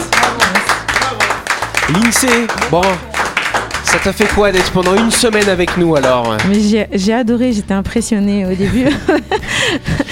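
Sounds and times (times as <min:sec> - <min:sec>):
audience clapping: 0:00.0 - 0:06.7
speech: 0:01.9 - 0:03.1, 0:03.9 - 0:10.0
laughter: 0:08.6 - 0:10.1.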